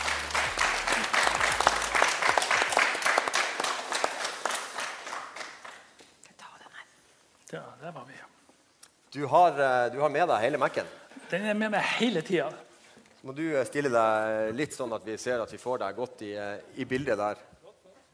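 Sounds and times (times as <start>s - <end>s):
audience applause: 0.0s - 5.9s
speech: 9.2s - 12.6s, 13.2s - 17.5s.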